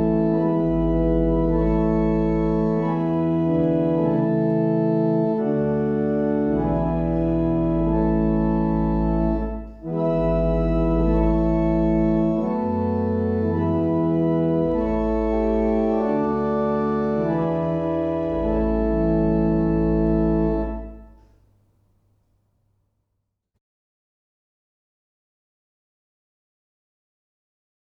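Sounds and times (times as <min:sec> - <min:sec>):
barrel organs: 0:00.0 - 0:21.2.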